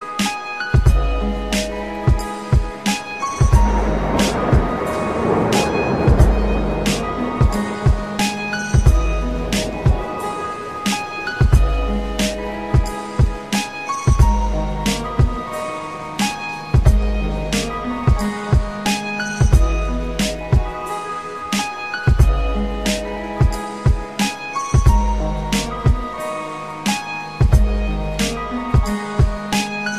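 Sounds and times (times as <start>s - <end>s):
rain: 0.7s - 29.9s.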